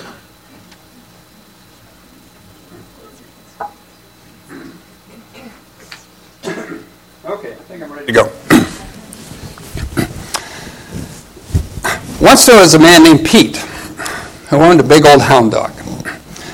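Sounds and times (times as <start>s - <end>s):
throat clearing: 4.5s - 7.0s, 8.5s - 8.9s
speech: 7.8s - 8.4s, 12.3s - 13.7s, 14.5s - 15.7s.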